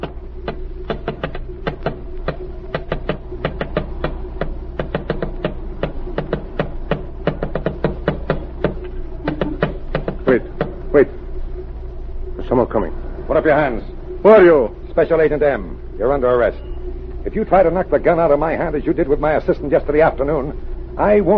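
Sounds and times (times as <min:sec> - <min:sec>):
tapping out a coded message: 0:00.0 - 0:10.9
speech: 0:13.5 - 0:21.3.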